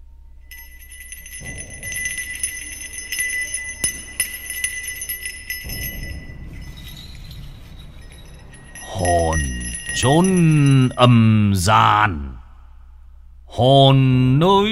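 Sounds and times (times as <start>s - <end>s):
low rumbling undertone: 0.0s - 14.7s
small black-bronze hand bell shaken by an elderly man: 0.5s - 11.5s
speech: 10.0s - 12.4s, 13.6s - 14.7s.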